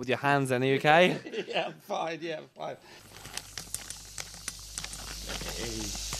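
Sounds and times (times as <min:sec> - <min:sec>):
speech: 0:00.0 - 0:03.1, 0:05.4 - 0:06.1
diced onions sizzling in a hot pan: 0:03.0 - 0:06.1.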